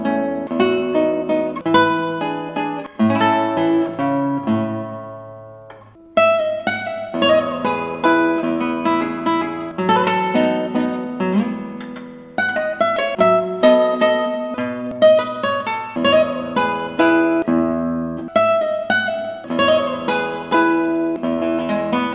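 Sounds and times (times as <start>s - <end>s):
guitar piece: 0.0s - 22.1s.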